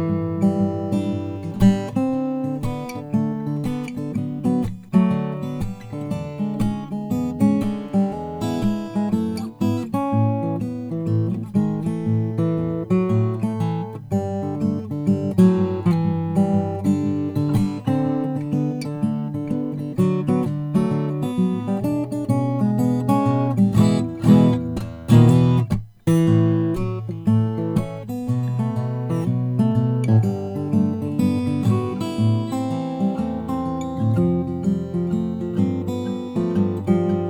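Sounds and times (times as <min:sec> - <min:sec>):
guitar: 0:00.0 - 0:37.2.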